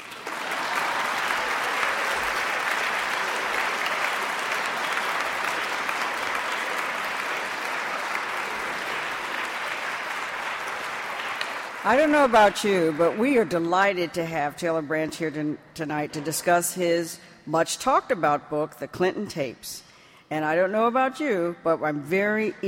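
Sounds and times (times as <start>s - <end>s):
audience applause: 0.0s - 13.0s
speech: 11.9s - 22.6s.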